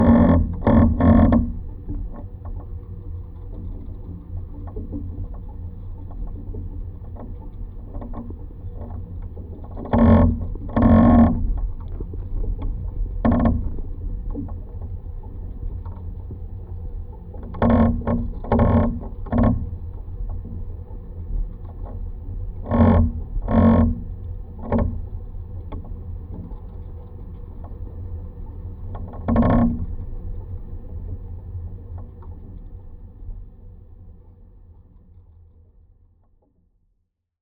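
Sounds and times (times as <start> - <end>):
windmill front pillar vibrating through a contact mic: 0.0 - 2.8, 6.2 - 30.9.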